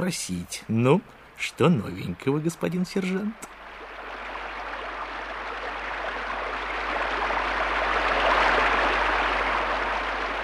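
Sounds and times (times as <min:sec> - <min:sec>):
speech: 0:00.0 - 0:03.6
heavy pouring rain: 0:03.0 - 0:10.4.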